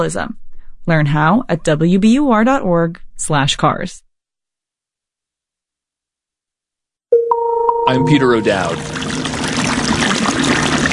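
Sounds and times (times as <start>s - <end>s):
speech: 0.0s - 4.0s, 7.9s - 9.2s
glacier meltwater trickling and pouring: 8.1s - 10.9s.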